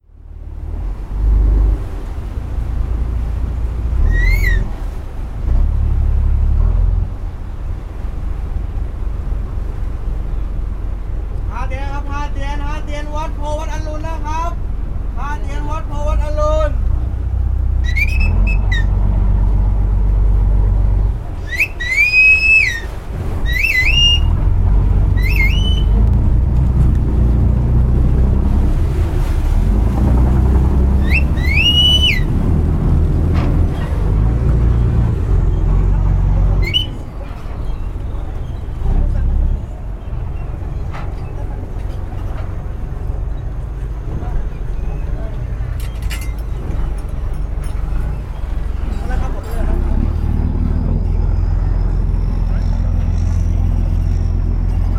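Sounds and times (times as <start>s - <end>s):
Chao Phraya Express Boat: 0.0s - 54.9s.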